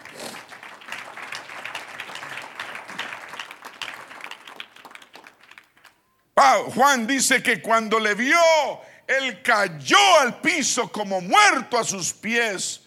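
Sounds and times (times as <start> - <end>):
crowd applauding: 0.0 - 6.0
speech: 6.4 - 12.8.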